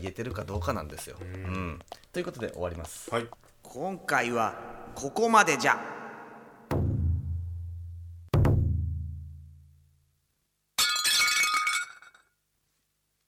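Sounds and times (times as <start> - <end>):
speech: 0.0 - 6.0
deep booming impacts: 4.5 - 7.6
plate breaking and shattering: 10.8 - 12.3.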